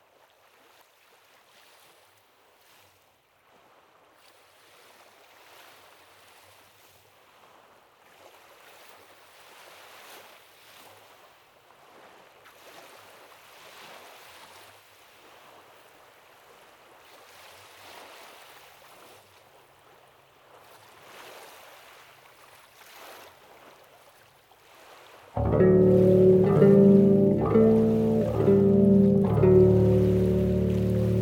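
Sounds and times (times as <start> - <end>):
loud deep bass notes: 25.4 - 31.2
soft Lake Michigan waves washing: 25.4 - 31.2.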